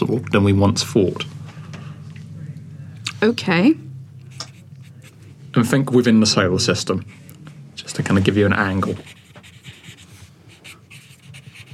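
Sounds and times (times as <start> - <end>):
speech: 0.1 - 1.4, 3.2 - 3.9, 5.5 - 7.2, 7.9 - 9.2
scratchy pen strokes on paper: 8.8 - 11.7.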